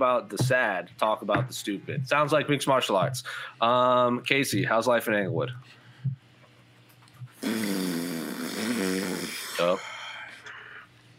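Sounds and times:
speech: 0.0s - 5.8s, 7.4s - 8.1s
fart noise: 7.2s - 9.7s.

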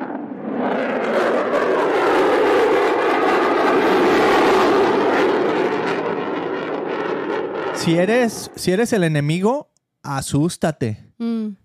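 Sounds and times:
airplane flying overhead with engine roar: 0.0s - 8.9s
speech: 7.9s - 11.6s.

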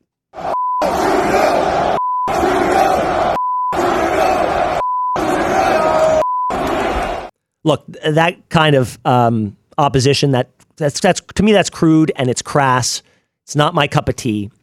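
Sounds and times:
large arena crowd jeering and shouting: 0.4s - 7.3s
short steady censor bleeps: 0.5s - 0.9s, 2.0s - 2.3s, 3.4s - 3.8s, 4.8s - 5.2s, 6.1s - 6.6s
speech: 7.6s - 14.6s.

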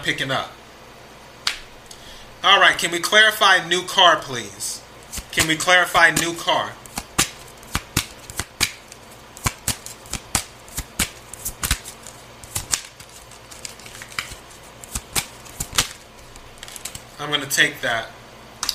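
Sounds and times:
speech: 0.0s - 0.6s, 2.4s - 6.8s, 17.3s - 18.2s
tarot cards being shuffled: 5.0s - 17.2s.

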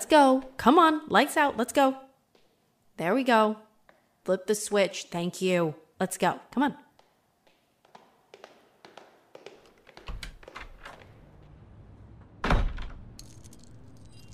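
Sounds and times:
speech: 0.1s - 2.0s, 3.0s - 3.6s, 4.2s - 6.8s
keys jangling: 13.2s - 14.3s.

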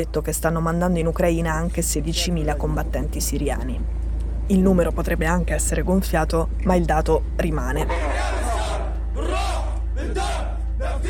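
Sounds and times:
speech: 0.0s - 8.4s
low hum: 0.0s - 11.0s
fighters shouting battle cries: 7.9s - 11.0s.

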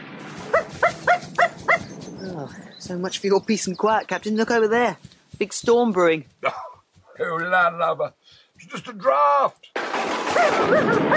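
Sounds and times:
dog barking: 0.5s - 1.9s, 10.4s - 11.1s
speech: 2.4s - 6.6s, 7.2s - 11.1s.

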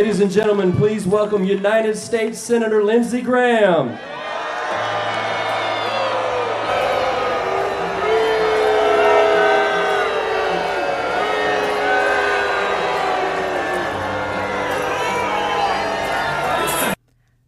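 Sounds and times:
speech: 0.0s - 4.9s
crowd booing a speaker: 3.9s - 17.0s.

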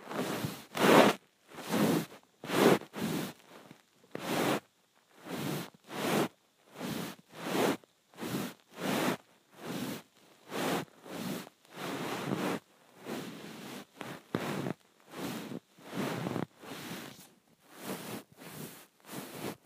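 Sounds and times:
phone rubbed against a blanket: 0.0s - 19.6s.

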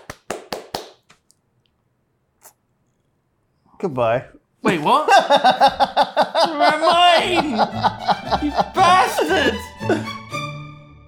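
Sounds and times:
small round of applause: 0.0s - 1.0s
speech: 3.8s - 10.1s
laughter: 4.7s - 10.1s.

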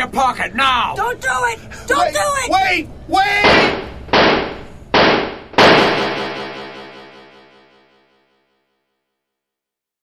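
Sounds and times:
speech: 0.1s - 3.9s
police gunshots: 3.4s - 7.0s.

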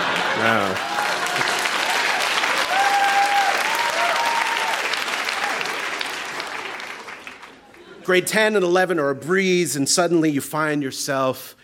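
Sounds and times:
audience applause: 0.0s - 7.9s
speech: 0.4s - 0.9s, 8.1s - 11.6s.

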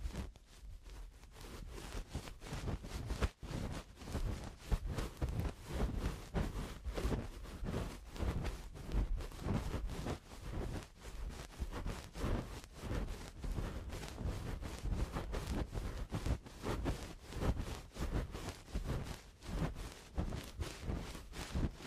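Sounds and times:
scratchy rustling strokes of eardrum cleaning: 0.0s - 21.8s.

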